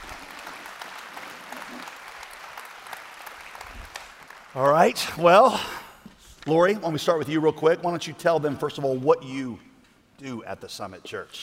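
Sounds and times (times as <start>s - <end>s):
church congregation clapping to welcome two guests onto the stage: 0.0s - 5.9s
speech: 4.6s - 5.8s, 6.4s - 11.4s.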